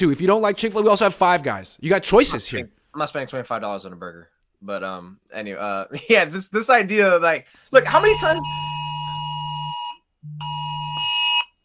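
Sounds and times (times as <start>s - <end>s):
speech: 0.0s - 8.7s
phone emergency alert for missing adult buzzing: 7.8s - 11.6s.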